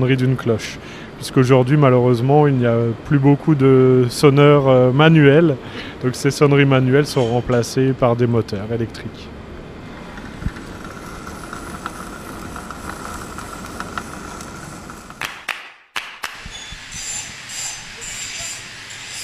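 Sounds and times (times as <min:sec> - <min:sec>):
speech: 0:00.0 - 0:09.4
power grinder grinding metal bell-mounting brackets: 0:10.0 - 0:15.2, 0:16.8 - 0:19.2.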